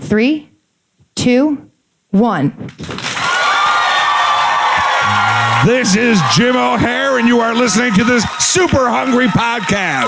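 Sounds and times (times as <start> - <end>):
speech: 0.1 - 0.5, 1.2 - 3.0, 5.6 - 10.0
group of people clapping: 2.7 - 10.0
cheering and whoops: 3.2 - 10.0.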